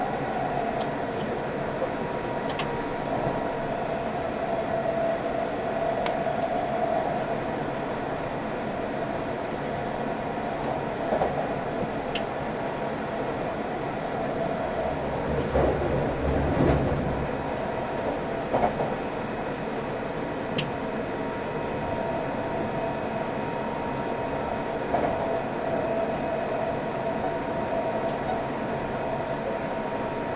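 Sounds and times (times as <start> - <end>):
E351 series Super Azusa train wheels and motors rumbling: 0.0 - 30.3.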